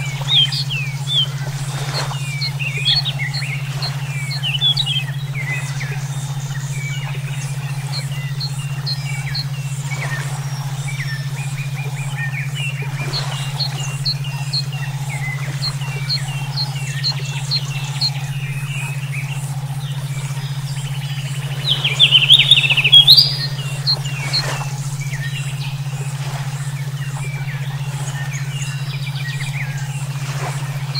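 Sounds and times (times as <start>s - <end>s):
low electronic hum: 0.0s - 30.9s
songbirds chirping: 0.0s - 30.9s.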